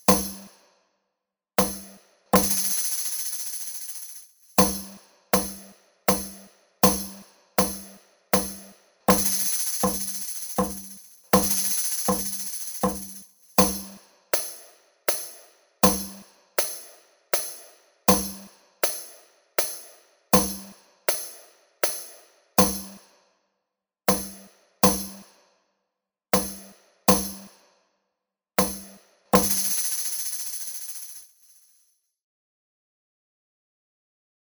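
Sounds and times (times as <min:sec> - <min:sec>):
rhythm exercise in compound meter: 0:00.0 - 0:00.5, 0:01.6 - 0:23.0, 0:24.1 - 0:25.2, 0:26.4 - 0:27.5, 0:28.6 - 0:31.2.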